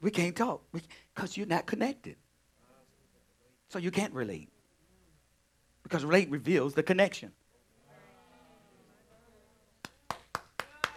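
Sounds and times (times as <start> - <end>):
speech: 0.0 - 2.2, 3.7 - 4.6, 5.8 - 7.4
hand clapping: 9.8 - 10.9.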